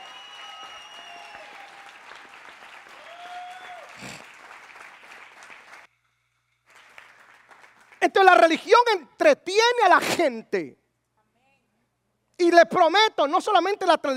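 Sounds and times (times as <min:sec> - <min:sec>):
audience applause: 0:00.0 - 0:05.9, 0:06.7 - 0:08.0
speech: 0:08.1 - 0:10.8, 0:12.4 - 0:14.1.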